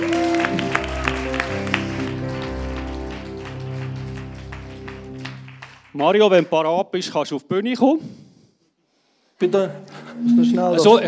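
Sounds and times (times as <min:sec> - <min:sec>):
audience applause: 0:00.0 - 0:06.8
speech: 0:06.0 - 0:08.2, 0:09.4 - 0:11.0.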